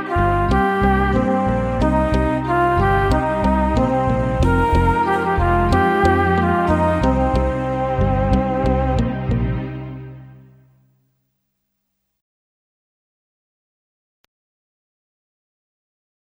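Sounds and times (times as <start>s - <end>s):
minor pentatonic melody: 0.0s - 9.6s.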